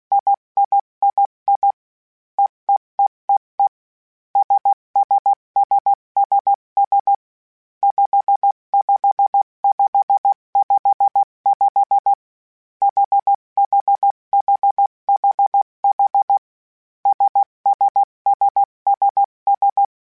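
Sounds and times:
Morse code CW code groups of basic letters: 0.1 - 1.8, 4.4 - 7.2, 7.8 - 12.2, 12.8 - 16.4, 17.1 - 19.9.

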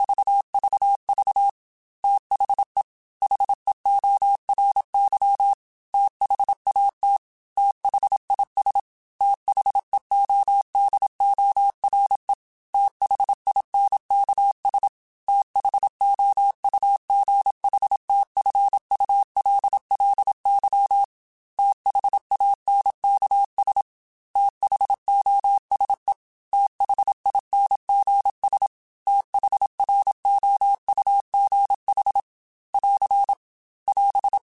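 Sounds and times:
Morse code beeps: 0.0 - 7.2, 7.8 - 23.8, 24.4 - 32.2, 32.8 - 34.4.

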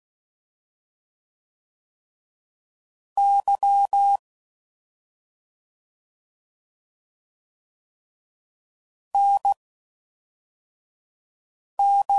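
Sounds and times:
Morse code CW code groups at 5 WPM: 3.2 - 4.2, 9.2 - 9.6, 11.8 - 12.1.

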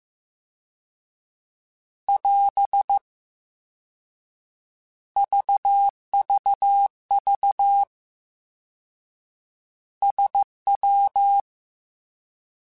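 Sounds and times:
Morse code CW code groups: 2.1 - 3.0, 5.2 - 7.9, 10.0 - 11.5.

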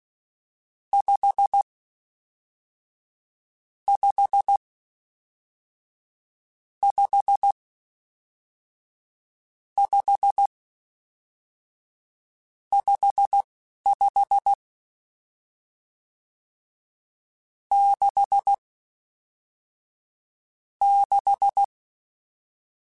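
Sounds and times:
Morse code CW code groups: 3.9 - 4.6, 6.8 - 7.6, 9.8 - 10.5, 12.8 - 14.6, 17.7 - 18.6, 20.8 - 21.7.

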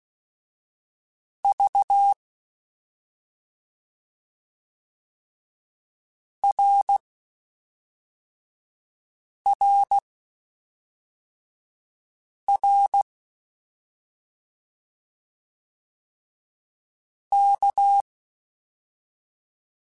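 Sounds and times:
CW Morse code groups in mixed short runs: 1.5 - 2.1, 6.5 - 7.0, 9.6 - 10.0, 12.5 - 13.0, 17.4 - 18.0.

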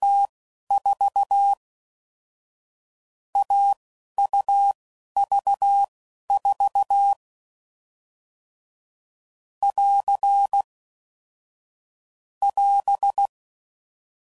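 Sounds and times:
CW Morse code groups at 10 WPM: 0.0 - 1.6, 3.4 - 7.2, 9.6 - 10.7, 12.4 - 13.3.

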